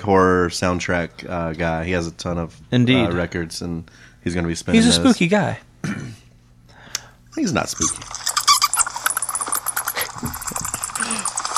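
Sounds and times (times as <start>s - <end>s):
speech: 0.0s - 6.2s, 7.4s - 8.2s
bat squeaks: 8.3s - 9.9s.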